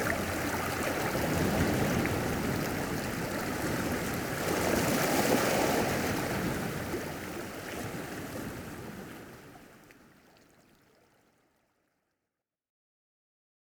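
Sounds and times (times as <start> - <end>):
relaxing ocean waves: 0.0 - 9.8.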